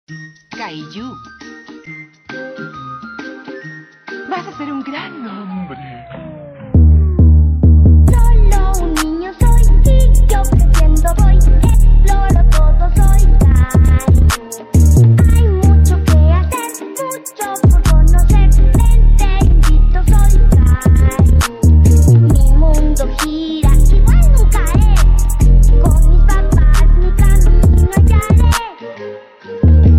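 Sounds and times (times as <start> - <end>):
trap beat: 5.2 - 28.7, 29.6 - 29.9.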